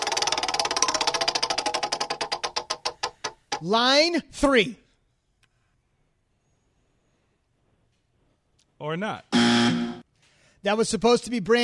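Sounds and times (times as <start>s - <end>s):
prize wheel spun on a radio show ticking: 0.0s - 3.6s
speech: 3.6s - 4.8s, 8.8s - 9.8s, 10.6s - 11.6s.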